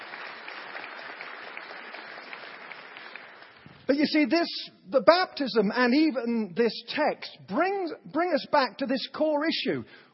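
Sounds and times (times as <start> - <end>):
congregation at a baptism service clapping to welcome guests: 0.0 - 4.4
speech: 3.9 - 10.1.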